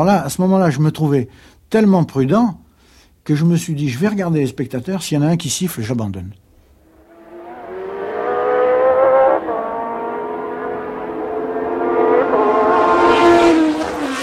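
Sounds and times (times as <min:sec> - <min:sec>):
speech: 0:00.0 - 0:02.6, 0:03.2 - 0:06.4
race car engine downshifting gears: 0:06.9 - 0:14.2.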